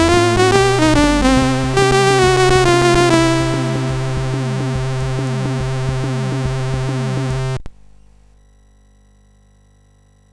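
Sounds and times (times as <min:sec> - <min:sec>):
CSG8580R5 sound chip: 0:00.0 - 0:07.6.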